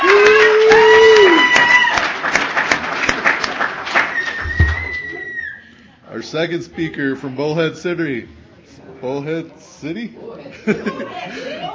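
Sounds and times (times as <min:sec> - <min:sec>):
whooping: 0:00.0 - 0:02.1, 0:04.0 - 0:05.7
audience applause: 0:00.0 - 0:05.3
high whistle: 0:04.1 - 0:05.6
speech: 0:06.3 - 0:08.4, 0:09.0 - 0:11.7
laughter: 0:10.4 - 0:11.7.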